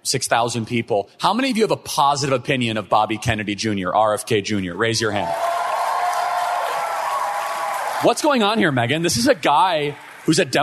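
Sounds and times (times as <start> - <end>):
speech: 0.0 - 5.6, 8.0 - 10.6
convention audience applause: 5.2 - 10.6.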